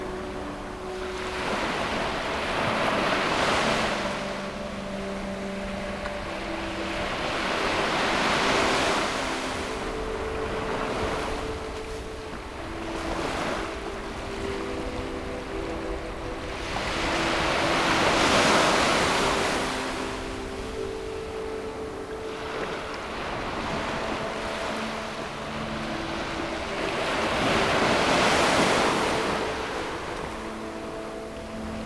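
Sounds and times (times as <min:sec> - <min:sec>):
ocean waves: 0:00.0 - 0:31.8
soft slow music of sustained low notes: 0:00.0 - 0:31.8.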